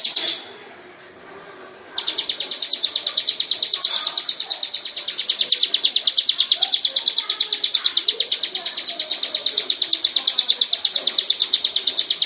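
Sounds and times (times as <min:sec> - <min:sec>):
bird song of rapid high chirped notes: 0:00.0 - 0:00.5, 0:02.0 - 0:12.2.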